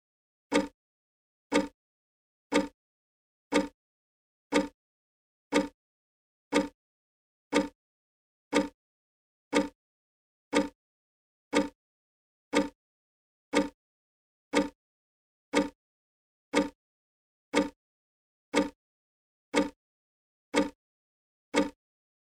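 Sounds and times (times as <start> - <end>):
clock: 0.5 - 0.8, 1.5 - 1.8, 2.5 - 2.8, 3.5 - 3.8, 4.5 - 4.8, 5.5 - 5.8, 6.5 - 6.8, 7.5 - 7.8, 8.5 - 8.8, 9.5 - 9.8, 10.5 - 10.8, 11.5 - 11.8, 12.5 - 12.8, 13.5 - 13.8, 14.5 - 14.8, 15.5 - 15.8, 16.5 - 16.8, 17.5 - 17.8, 18.5 - 18.8, 19.5 - 19.8, 20.5 - 20.8, 21.5 - 21.8.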